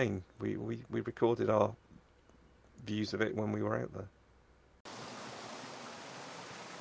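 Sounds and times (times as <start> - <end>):
speech: 0.0 - 1.8, 2.8 - 4.2
loud gushing water at a water feature: 4.9 - 6.7.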